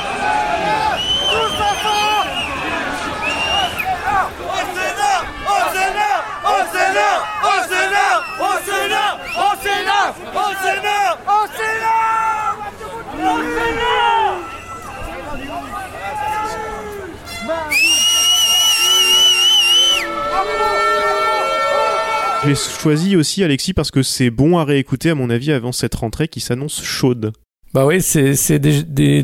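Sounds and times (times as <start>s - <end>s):
protest crowd shouting and chanting during street clashes: 0.0s - 23.0s
speech: 22.5s - 29.2s.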